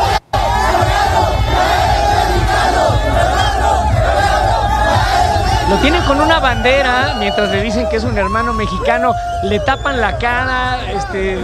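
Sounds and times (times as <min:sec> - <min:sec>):
large crowd of football fans chanting and shouting at a celebration: 0:00.0 - 0:11.4
speech: 0:05.8 - 0:11.4.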